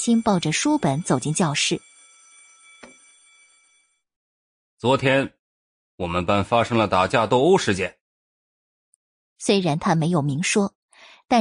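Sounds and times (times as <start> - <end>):
speech: 0.0 - 1.9, 4.8 - 5.4, 6.0 - 8.0, 9.4 - 11.4
school bell ringing for class: 0.0 - 3.9.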